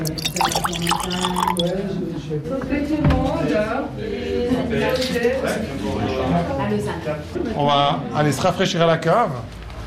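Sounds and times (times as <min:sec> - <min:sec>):
Grand Chasselas wine pouring into a glass: 0:00.0 - 0:01.7
speech: 0:00.4 - 0:09.6.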